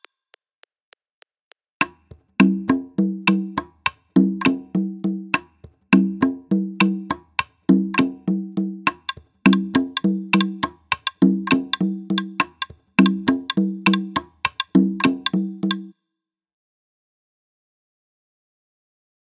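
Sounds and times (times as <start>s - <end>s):
Colombian rumba music at 102 bpm: 1.8s - 15.9s.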